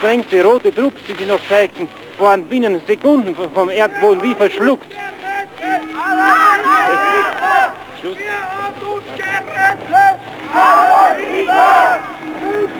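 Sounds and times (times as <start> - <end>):
speech: 0.0 - 5.2, 8.0 - 12.7
crowd shouting and cheering in the streets of Vienna: 3.8 - 12.7.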